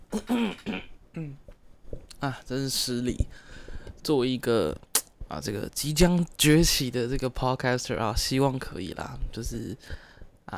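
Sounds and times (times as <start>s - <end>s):
person coughing: 0.1s - 1.4s
throat clearing: 0.1s - 1.4s
speech: 0.2s - 1.4s, 2.2s - 10.5s.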